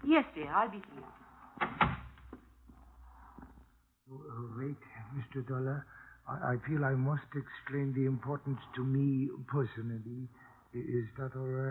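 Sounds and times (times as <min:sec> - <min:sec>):
speech: 0:00.0 - 0:01.7, 0:04.1 - 0:11.7
door opening: 0:00.9 - 0:02.5.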